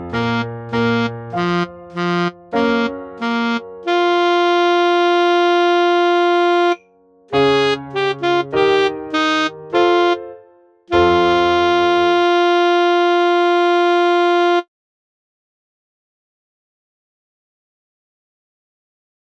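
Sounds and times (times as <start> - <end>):
saxophone playing a Cossack dance tune: 0.1 - 14.7.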